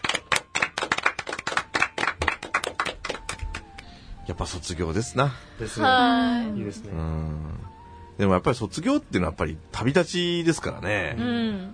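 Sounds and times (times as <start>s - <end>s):
applause: 0.0s - 3.9s
speech: 4.3s - 11.7s.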